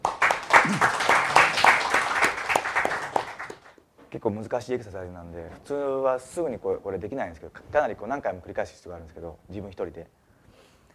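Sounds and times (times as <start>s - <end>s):
audience clapping during a group workshop: 0.0s - 3.8s
speech: 4.2s - 10.2s.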